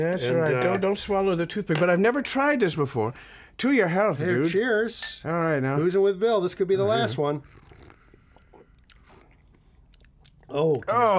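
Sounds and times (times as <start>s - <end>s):
speech: 0.0s - 7.6s, 10.5s - 11.1s
wet crunchy chewing of a cocktail onion: 7.4s - 10.9s.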